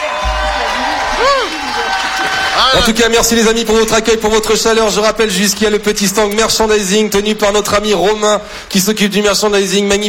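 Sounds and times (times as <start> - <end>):
clapping at a live show: 0.0 - 3.0
audience cheering at a live show: 0.0 - 5.8
speech: 1.2 - 10.0.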